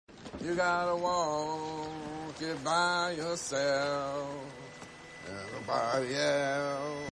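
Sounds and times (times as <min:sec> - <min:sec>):
person singing: 0:00.3 - 0:07.1.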